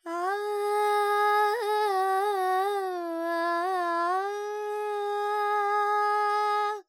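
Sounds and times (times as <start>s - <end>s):
female Carnatic vocal alap in raga Charukesi in G, dry: 0.0s - 6.8s.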